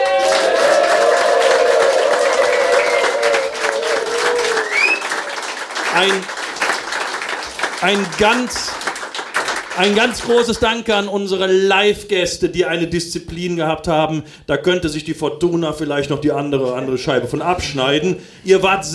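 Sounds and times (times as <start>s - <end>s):
live audience applause: 0.0s - 10.6s
speech: 6.0s - 6.3s, 7.8s - 8.8s, 9.8s - 18.9s.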